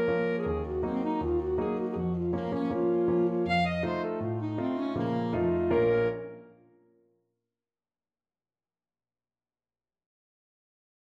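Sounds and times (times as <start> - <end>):
saxophone: 0.0 - 6.6.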